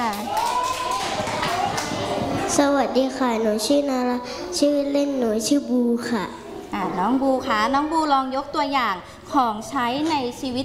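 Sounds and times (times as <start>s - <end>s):
children clapping: 0.0s - 2.5s
speech: 2.5s - 10.6s.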